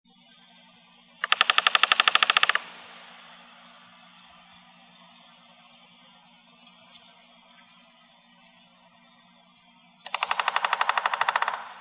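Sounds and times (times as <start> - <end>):
American three-toed woodpecker drumming: 1.2 - 4.0, 10.0 - 11.7.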